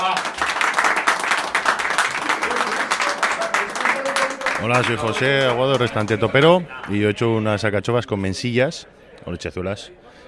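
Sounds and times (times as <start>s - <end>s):
audience applause: 0.0s - 7.1s
speech: 4.6s - 10.2s.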